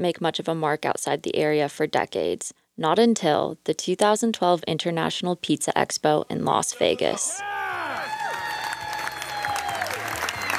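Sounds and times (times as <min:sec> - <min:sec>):
speech: 0:00.0 - 0:07.6
crowd whooping and shouting: 0:07.2 - 0:10.5
crowd clapping: 0:07.9 - 0:10.5.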